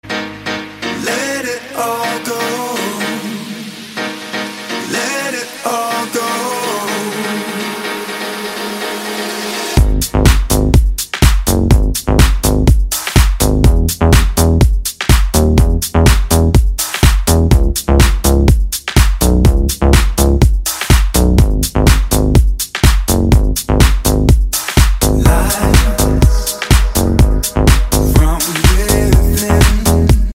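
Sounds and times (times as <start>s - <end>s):
dubstep music: 0.0s - 30.3s.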